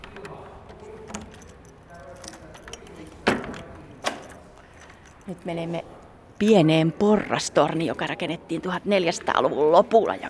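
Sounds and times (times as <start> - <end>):
keys jangling: 0.3 - 6.6
speech: 5.3 - 10.2.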